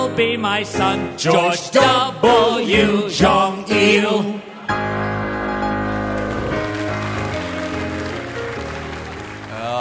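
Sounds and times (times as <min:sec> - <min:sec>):
speech: 0:00.2 - 0:05.1
crowd erupting: 0:04.4 - 0:09.7.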